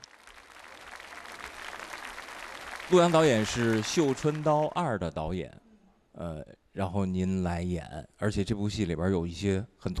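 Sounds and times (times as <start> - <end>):
audience applause following a tribute at a Chinese-language film event: 0.0 - 4.9
speech: 2.9 - 5.6, 6.2 - 9.9.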